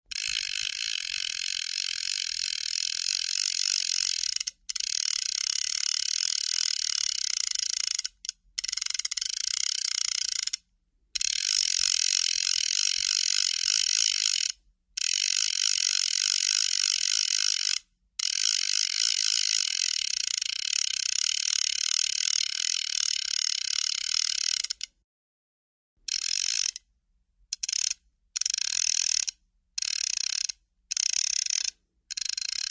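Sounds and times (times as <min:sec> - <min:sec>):
fly fishing reel cranking reel in: 0:00.1 - 0:10.6, 0:11.2 - 0:24.9, 0:26.1 - 0:26.8, 0:27.5 - 0:32.6.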